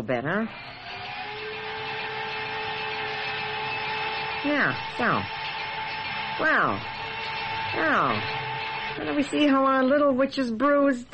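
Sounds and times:
speech: 0.0 - 1.0, 4.4 - 5.4, 6.4 - 7.0, 7.7 - 8.4, 9.0 - 11.1
blender running: 0.3 - 10.1.

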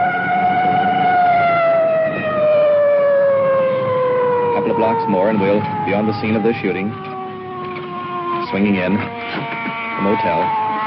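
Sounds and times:
police car siren at full wail: 0.0 - 10.8
speech: 4.8 - 7.2, 8.5 - 10.6.

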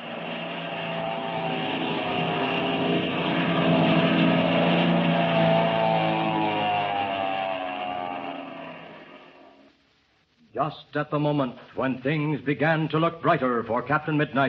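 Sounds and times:
airplane diving overhead: 0.0 - 9.7
speech: 10.6 - 14.4.

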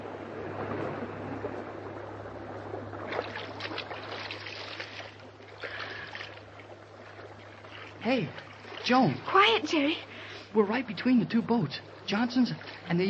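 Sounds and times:
low constant hum: 0.0 - 13.0
rushing water: 0.0 - 13.0
swimmers splashing as they break the surface: 2.4 - 10.6
speech: 8.0 - 13.0.

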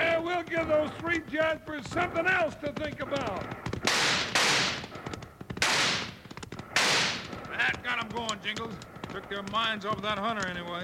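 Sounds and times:
speech: 0.5 - 3.7, 7.6 - 10.8
gunshots in an old radio western drama: 3.1 - 7.5.

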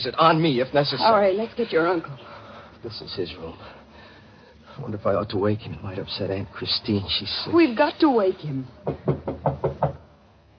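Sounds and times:
speech: 0.0 - 3.8, 4.8 - 9.7
knocking on a door: 8.8 - 10.1.

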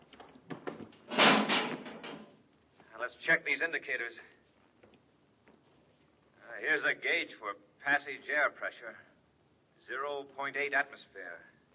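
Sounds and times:
light knocks and clatters: 0.0 - 2.4
heavy metal airlock door sliding shut: 1.1 - 2.3
speech: 3.0 - 4.4, 6.6 - 9.1, 9.9 - 11.5.

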